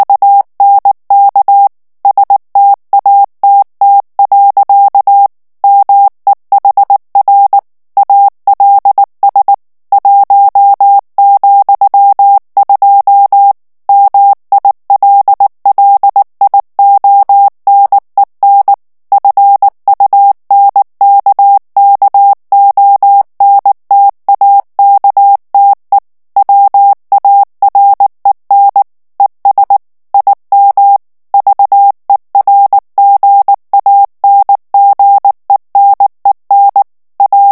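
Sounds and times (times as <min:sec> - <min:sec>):
German plain-text Morse code at 18 words per minute: 0:00.0 - 0:37.4.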